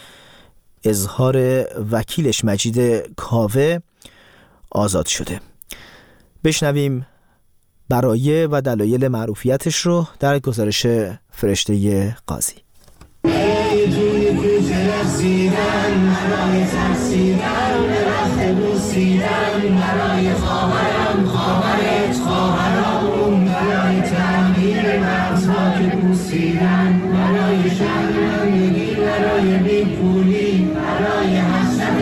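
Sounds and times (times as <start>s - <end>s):
speech: 0.8s - 3.9s, 4.7s - 7.1s, 7.9s - 12.6s
crowd chanting a protest song in the streets of Iran: 13.3s - 31.9s.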